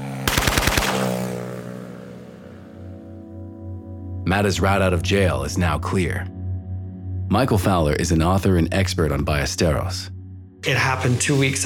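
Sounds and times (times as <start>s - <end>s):
gunfire from motorcycle drive-by shooting: 0.2s - 1.6s
speech: 4.3s - 6.4s, 7.3s - 11.6s.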